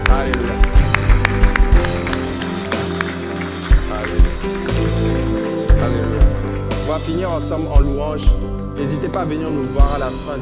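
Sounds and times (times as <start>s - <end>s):
audience clapping in rhythm: 0.0s - 7.9s
sustained keyboard chords: 0.0s - 10.4s
speech: 7.1s - 10.4s.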